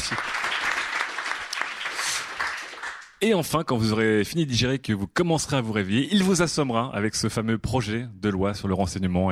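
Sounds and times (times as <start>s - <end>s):
audience applause: 0.0s - 3.2s
speech: 3.2s - 9.3s.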